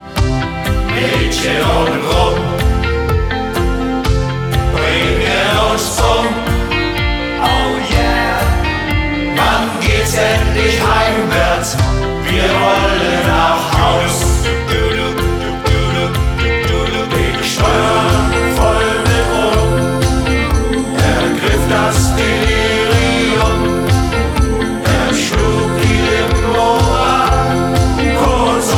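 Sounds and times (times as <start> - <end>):
shanty choir singing: 0.0 - 28.7.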